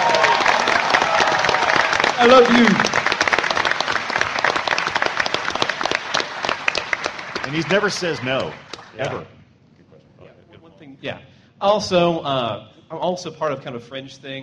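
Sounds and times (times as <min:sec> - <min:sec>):
audience applause: 0:00.0 - 0:09.2
speech: 0:02.2 - 0:02.9, 0:07.5 - 0:09.4, 0:11.0 - 0:14.4.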